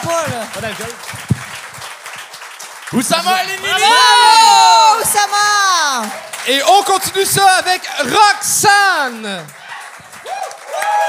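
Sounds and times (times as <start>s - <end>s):
small group applause: 0.0s - 11.0s
speech: 0.1s - 1.6s, 2.9s - 9.6s.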